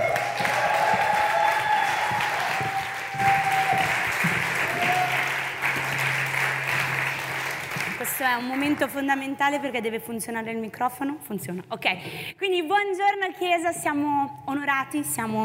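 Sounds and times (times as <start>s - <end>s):
audience applauding: 0.0s - 8.8s
speech: 8.2s - 15.4s.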